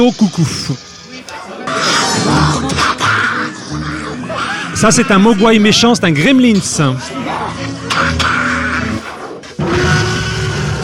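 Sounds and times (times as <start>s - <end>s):
speech: 0.0s - 0.9s, 4.8s - 8.1s
laughter: 0.0s - 9.1s
voice imitating a tyrannosaurus roar: 1.6s - 5.8s, 6.5s - 10.8s.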